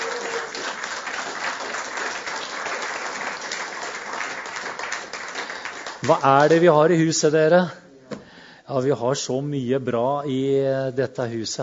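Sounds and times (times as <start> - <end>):
audience applauding: 0.0 - 6.6
speech: 6.0 - 7.8, 8.7 - 11.6.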